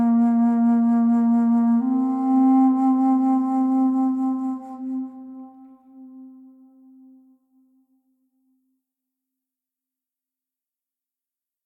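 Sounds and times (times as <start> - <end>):
bass flute: 0.0 - 7.2.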